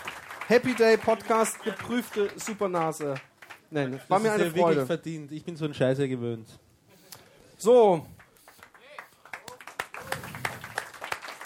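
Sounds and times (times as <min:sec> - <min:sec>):
audience clapping: 0:00.0 - 0:04.2, 0:08.2 - 0:11.4
speech: 0:00.5 - 0:06.6, 0:07.6 - 0:08.2.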